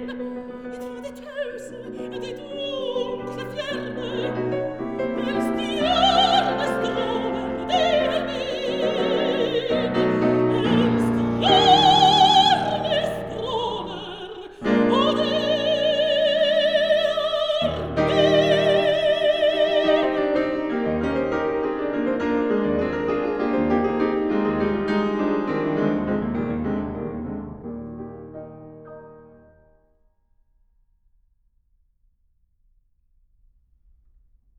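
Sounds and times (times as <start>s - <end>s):
person singing: 0.0s - 20.5s
piano: 0.0s - 30.1s.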